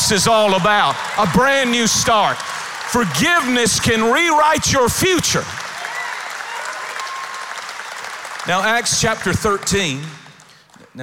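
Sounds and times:
large indoor crowd applauding: 0:00.0 - 0:10.9
speech: 0:00.1 - 0:05.6, 0:08.4 - 0:10.2.

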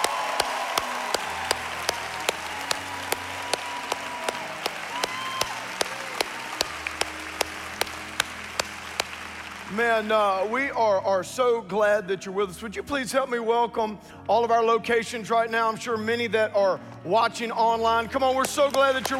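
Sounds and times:
congregation applauding at an Easter church service: 0:00.0 - 0:10.5, 0:18.6 - 0:19.1
speech: 0:09.8 - 0:19.1.

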